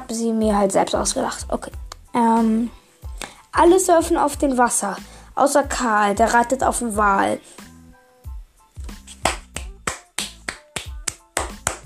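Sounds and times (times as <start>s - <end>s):
speech: 0.1s - 2.8s, 3.6s - 7.6s
applause or finger snapping: 8.9s - 11.8s.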